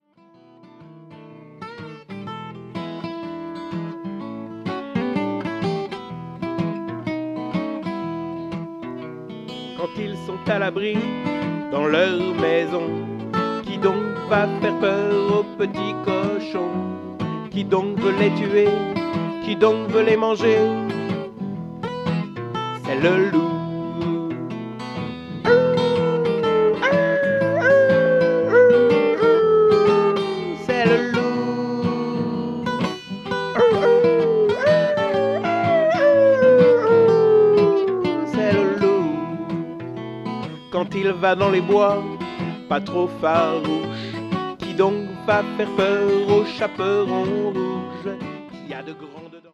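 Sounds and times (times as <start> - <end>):
blues music: 0.4 - 49.0.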